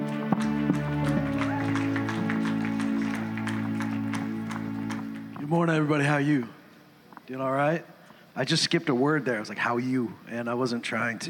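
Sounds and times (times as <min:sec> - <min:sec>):
applause: 0:00.0 - 0:05.5
speech: 0:05.5 - 0:06.6, 0:07.3 - 0:11.2.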